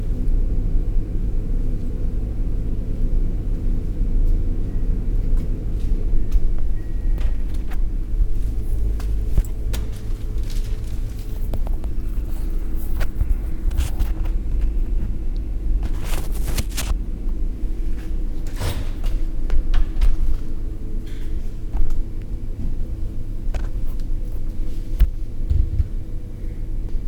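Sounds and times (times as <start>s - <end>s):
refrigerator hum: 0.0s - 27.0s.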